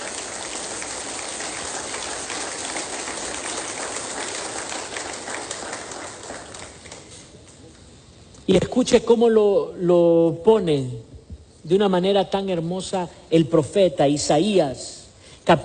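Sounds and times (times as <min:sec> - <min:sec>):
audience applause: 0:00.0 - 0:07.2
speech: 0:08.5 - 0:15.6.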